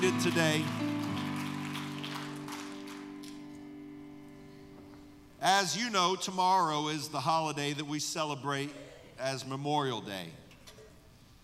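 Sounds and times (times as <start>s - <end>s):
audience applause, hand clapping: 0.0s - 3.6s
speech: 0.1s - 0.9s, 5.4s - 10.4s.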